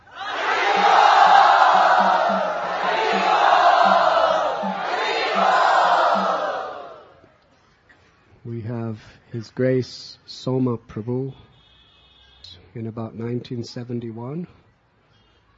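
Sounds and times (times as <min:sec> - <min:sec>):
crowd cheering welcoming a guest at a Krishna devotional gathering: 0:00.0 - 0:07.3
speech: 0:09.3 - 0:11.5, 0:12.5 - 0:14.6.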